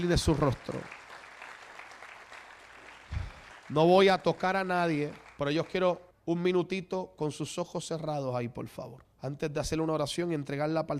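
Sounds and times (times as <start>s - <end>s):
speech: 0.0s - 1.0s, 3.7s - 10.9s
audience applause: 0.0s - 5.8s.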